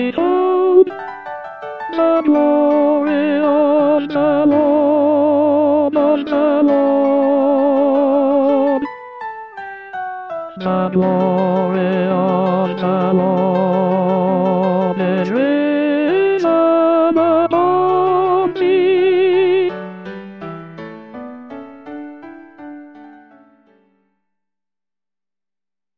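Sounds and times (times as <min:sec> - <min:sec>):
tenor singing: 0:00.0 - 0:01.1, 0:01.8 - 0:08.9, 0:10.5 - 0:20.0.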